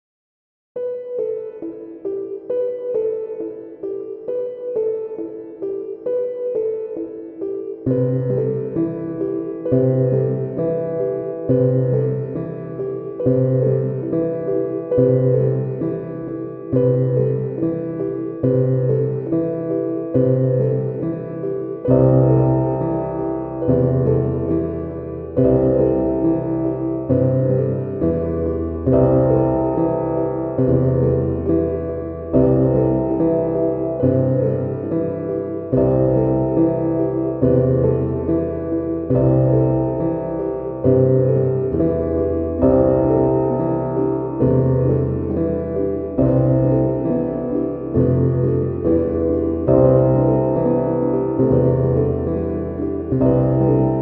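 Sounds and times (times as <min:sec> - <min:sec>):
layered piano: 0:00.8 - 0:54.0.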